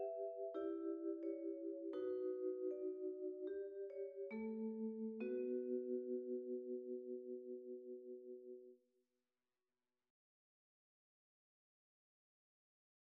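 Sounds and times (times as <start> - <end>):
vibraphone: 0.0 - 8.7.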